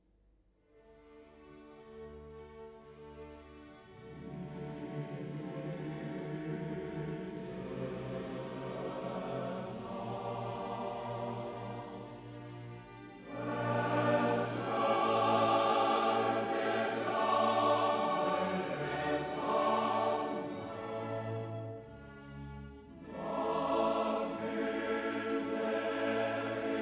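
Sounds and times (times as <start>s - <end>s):
male choir singing: 4.0s - 12.3s, 13.1s - 21.8s, 23.0s - 26.7s.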